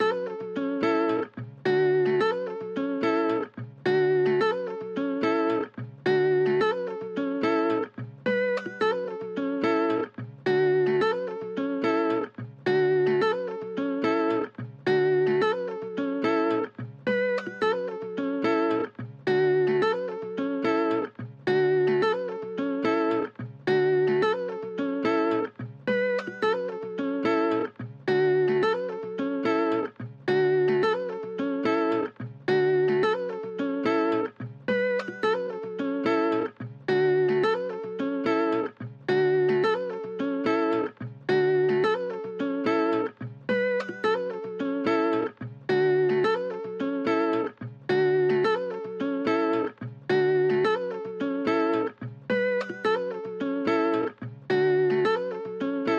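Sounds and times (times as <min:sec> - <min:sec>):
guitar: 0:00.0 - 0:55.9.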